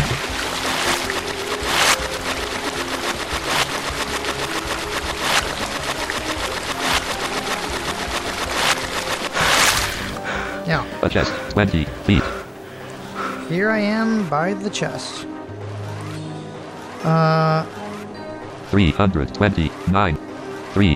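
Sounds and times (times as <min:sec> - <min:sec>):
swimming strokes in a video game: 0:00.0 - 0:10.2
churning water wash in a video game: 0:00.0 - 0:20.9
speech: 0:11.1 - 0:12.4, 0:13.5 - 0:15.4, 0:17.0 - 0:17.8, 0:18.7 - 0:20.2, 0:20.8 - 0:20.9.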